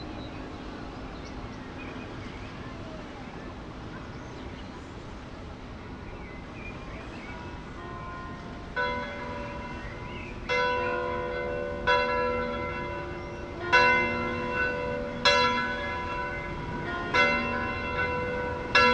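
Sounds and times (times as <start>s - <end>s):
evening bells ringing in Moneglia Italy: 7.4s - 18.9s.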